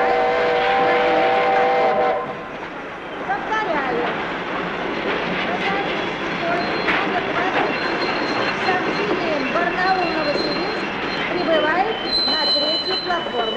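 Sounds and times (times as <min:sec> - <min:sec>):
passenger train number 27 on the Barnaul service pulling into a station: 0:00.0 - 0:13.5
high thin train wheel squeals: 0:05.6 - 0:13.5.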